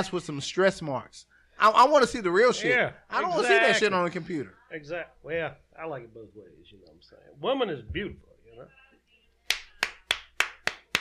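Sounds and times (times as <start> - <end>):
speech: 0.0 - 8.8
hand clapping applause: 9.5 - 10.9.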